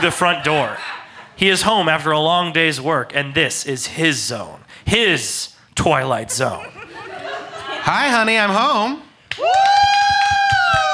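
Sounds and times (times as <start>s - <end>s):
laughter: 0.0s - 2.2s, 6.0s - 9.0s
speech: 0.0s - 6.8s, 7.8s - 9.7s
audience whooping: 9.3s - 10.9s.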